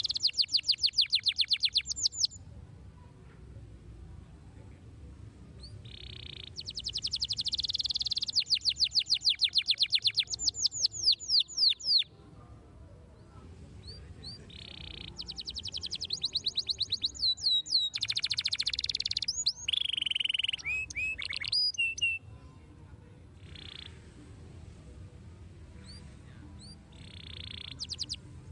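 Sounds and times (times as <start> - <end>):
canary whistled song with trills: 0.0 - 2.4, 5.6 - 12.1, 14.3 - 22.2, 26.6 - 28.2.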